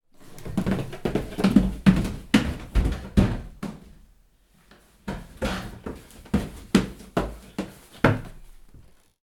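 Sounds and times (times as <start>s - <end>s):
footsteps running on stairs: 0.2s - 4.0s, 5.0s - 8.5s.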